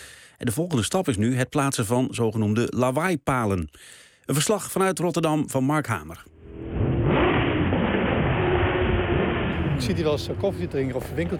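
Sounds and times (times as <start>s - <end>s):
speech: 0.4s - 6.3s, 9.8s - 11.3s
expensive cars revving engines and speeding in Rotterdam: 6.3s - 11.3s.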